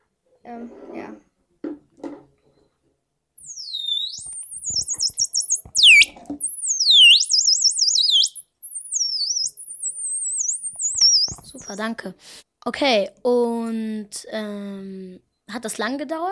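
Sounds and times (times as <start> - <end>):
speech: 0.4 - 1.2, 11.8 - 16.3
electronic bird call sounds from circuit board: 3.4 - 11.7.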